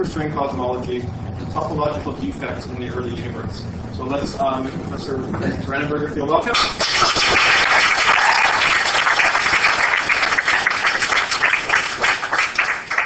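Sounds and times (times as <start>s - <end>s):
speech: 0.0s - 7.0s
audience applause: 6.8s - 13.0s.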